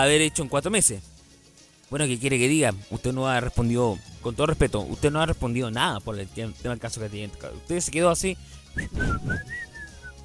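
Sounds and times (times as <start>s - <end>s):
speech: 0.0s - 1.1s, 1.9s - 9.7s
person whistling a tune: 8.7s - 10.2s.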